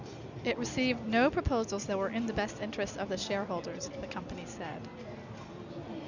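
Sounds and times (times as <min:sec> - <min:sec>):
babble of voices: 0:00.6 - 0:05.4.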